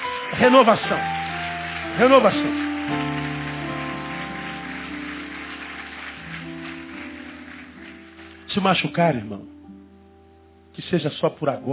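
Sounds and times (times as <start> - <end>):
people applauding: 0.0 - 9.0
speech: 0.3 - 1.2, 1.9 - 3.1, 8.6 - 9.5, 10.8 - 11.7.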